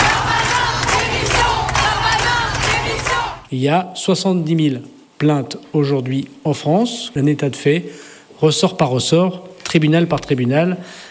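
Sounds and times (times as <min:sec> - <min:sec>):
large protest crowd chanting and shouting: 0:00.0 - 0:03.5
speech: 0:03.5 - 0:11.1.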